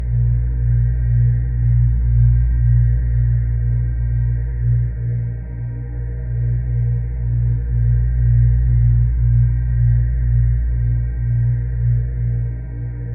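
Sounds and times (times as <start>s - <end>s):
low drone: 0.0s - 13.1s.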